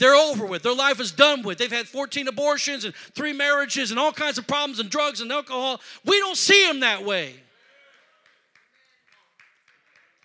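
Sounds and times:
speech: 0.0 - 7.4
scattered hand claps: 7.9 - 10.2.

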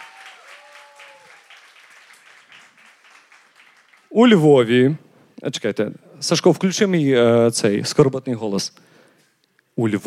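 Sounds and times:
audience applause at a live comedy show: 0.0 - 4.4
speech: 4.1 - 8.9, 9.8 - 10.0.

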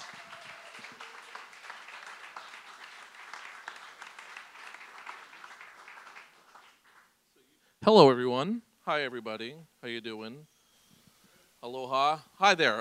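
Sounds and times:
audience round of applause: 0.0 - 7.1
speech: 7.8 - 10.5, 11.6 - 12.7.

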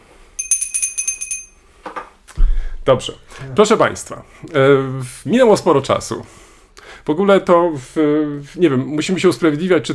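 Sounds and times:
bell ringing: 0.4 - 1.6
speech: 2.9 - 6.4, 7.0 - 9.9.

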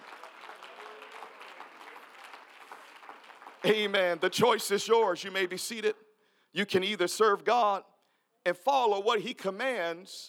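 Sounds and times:
audience clapping: 0.0 - 4.5
speech: 3.7 - 6.0, 6.6 - 10.2.

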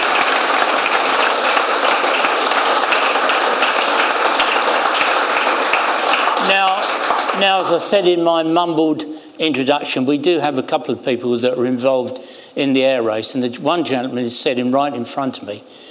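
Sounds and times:
audience applause: 0.0 - 8.2
speech: 7.4 - 15.8.

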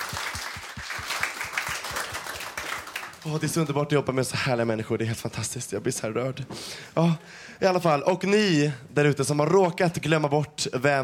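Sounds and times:
audience applause: 0.0 - 3.7
speech: 3.2 - 11.0.

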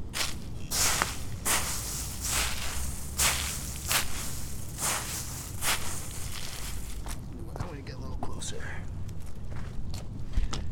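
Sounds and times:
footsteps walking through crunchy leaves: 0.0 - 7.2
footsteps walking on soft dirt: 0.0 - 10.6.

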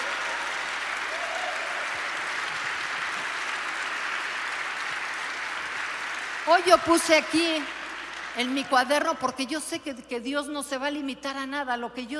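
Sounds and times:
audience applause: 0.0 - 9.1
speech: 6.5 - 7.8, 8.4 - 12.1.

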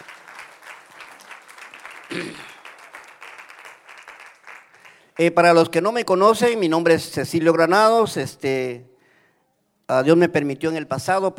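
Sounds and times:
audience applause: 0.0 - 5.1
speech: 2.1 - 2.5, 5.2 - 8.9, 9.9 - 11.3.

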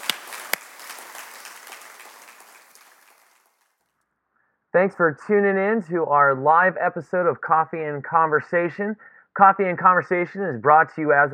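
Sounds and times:
audience applause: 0.0 - 3.6
speech: 4.7 - 11.3.

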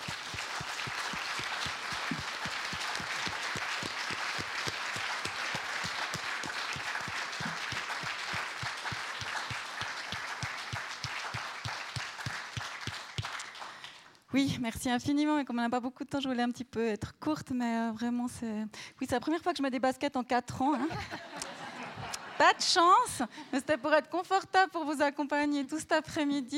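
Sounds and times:
audience applause: 0.0 - 14.0
speech: 14.3 - 21.3, 22.4 - 26.5
laughter: 20.8 - 22.9.

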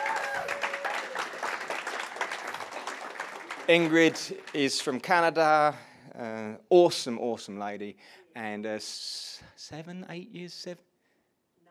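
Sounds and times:
audience applauding: 0.0 - 5.5
speech: 3.7 - 10.9.

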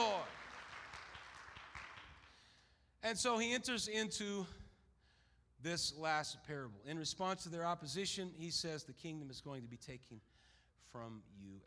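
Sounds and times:
audience clapping hands: 0.0 - 2.5
speech: 3.0 - 4.6, 5.6 - 11.6.

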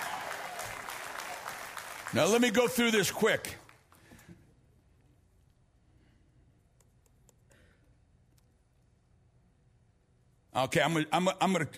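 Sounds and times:
steady applause from a sizable crowd: 0.0 - 3.8
speech: 2.1 - 3.6, 10.6 - 11.7.

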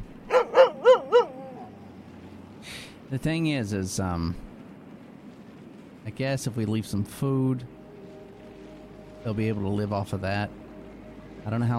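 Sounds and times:
dogs barking in a video game: 0.3 - 1.6
speech: 3.1 - 4.5, 6.1 - 7.8, 9.2 - 10.6, 11.4 - 11.7.

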